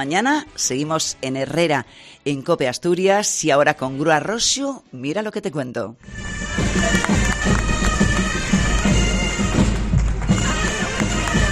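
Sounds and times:
speech: 0.0s - 7.6s
bagpipes playing droning tune: 6.1s - 11.5s
crowd clapping: 6.3s - 11.5s.

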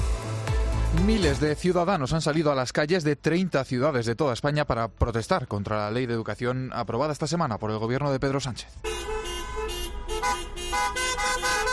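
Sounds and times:
speech: 0.9s - 9.1s
car horns honking in a protest caravan: 8.8s - 11.7s.

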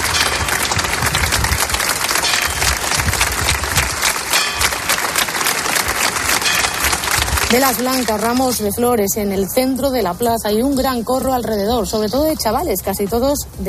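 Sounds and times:
crowd applauding in a packed square: 0.0s - 8.7s
speech: 7.5s - 13.6s.

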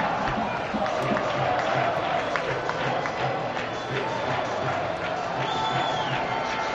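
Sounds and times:
stadium crowd chanting against the coach: 0.0s - 6.7s
sharp whistles and cries: 5.4s - 6.6s.

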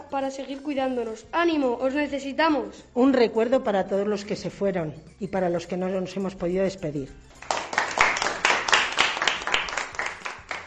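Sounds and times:
speech: 0.1s - 7.4s
crowd applauding: 7.4s - 10.6s.

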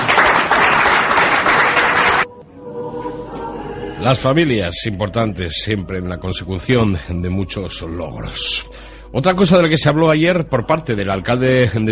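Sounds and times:
applause: 0.0s - 2.3s
speech: 4.0s - 11.9s.

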